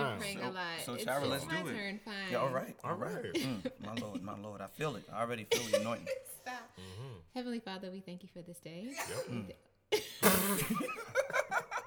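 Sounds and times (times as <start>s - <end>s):
speech: 0.3s - 11.6s
guest sneezing during prayer: 8.9s - 10.9s.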